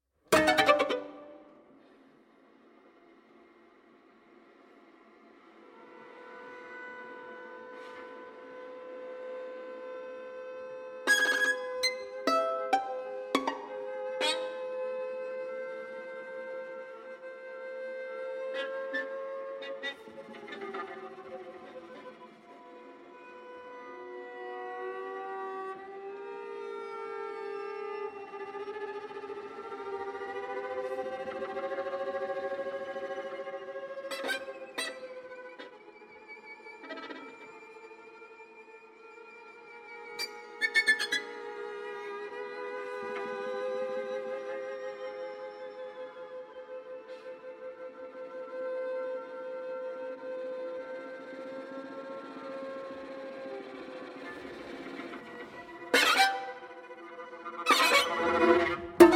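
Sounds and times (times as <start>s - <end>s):
string quartet: 0.3s - 2.1s, 4.3s - 59.1s.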